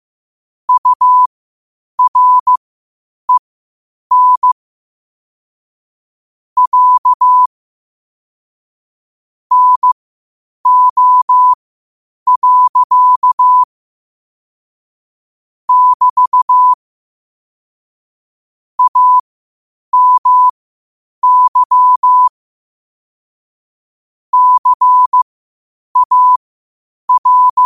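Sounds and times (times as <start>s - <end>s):
morse code at 5 wpm: 0.7s - 1.3s, 2.0s - 2.6s, 4.1s - 4.6s, 6.6s - 7.5s, 9.5s - 10.0s, 10.7s - 11.6s, 12.3s - 13.7s, 15.7s - 16.8s, 18.8s - 19.2s, 20.0s - 20.5s, 21.2s - 22.3s, 24.3s - 25.2s, 26.0s - 26.4s, 27.1s - 27.6s.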